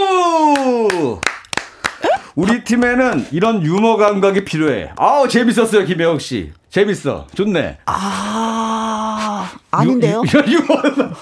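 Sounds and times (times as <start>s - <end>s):
hand clapping: 0.4s - 5.9s
speech: 2.4s - 11.2s
laughter: 10.2s - 11.2s.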